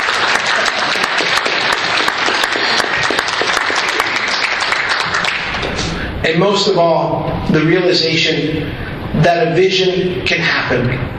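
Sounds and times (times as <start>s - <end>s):
audience applause: 0.0s - 5.9s
speech: 6.3s - 11.1s.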